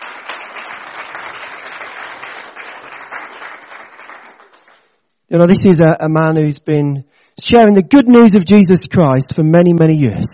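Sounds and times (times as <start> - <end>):
crowd applauding: 0.0 - 5.0
speech: 5.3 - 10.3.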